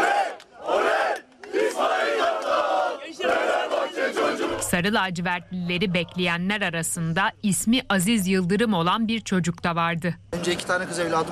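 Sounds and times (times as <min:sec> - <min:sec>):
football fans cheering and chanting: 0:00.0 - 0:04.7
speech: 0:04.8 - 0:11.3.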